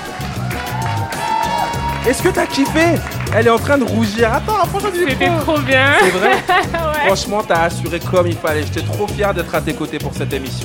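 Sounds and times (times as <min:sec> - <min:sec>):
audience applause: 0:00.0 - 0:07.2
speech: 0:02.0 - 0:10.6
laughter: 0:02.3 - 0:07.8
voices murmuring: 0:04.0 - 0:08.3.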